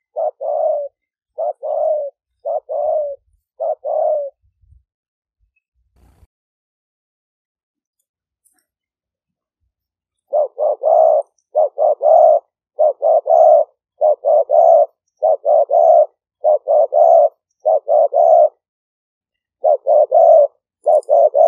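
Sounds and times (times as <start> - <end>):
spotted dove cooing: 0.0 - 4.4, 10.3 - 18.6, 19.6 - 21.4.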